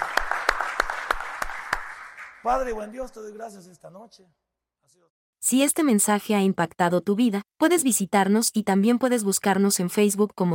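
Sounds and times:
audience loud applause: 0.0 - 2.7
speech: 2.4 - 10.5.

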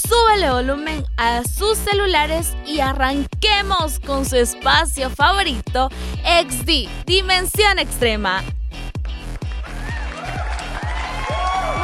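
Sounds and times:
speech: 0.0 - 8.6
rhythmic low thumping: 0.0 - 11.8
dense clapping: 9.1 - 11.8
audience cheering with whoops: 9.6 - 11.8.

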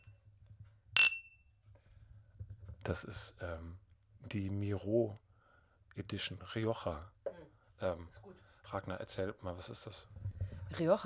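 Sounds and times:
wine glasses clinking in a toast: 1.0 - 1.3
speech: 2.9 - 5.2, 6.0 - 7.2, 7.8 - 11.0.

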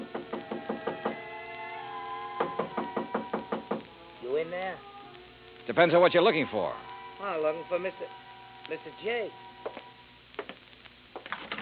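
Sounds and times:
knuckle knocks on a wooden hotel room door: 0.0 - 1.2, 2.4 - 3.9
speech: 4.4 - 4.9, 5.6 - 9.4.

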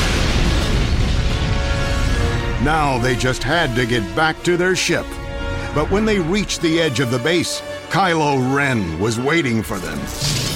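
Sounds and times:
explosion of the Starkiller base cooling device in Star Wars: 0.0 - 3.7
speech: 2.6 - 5.2, 5.8 - 10.5.

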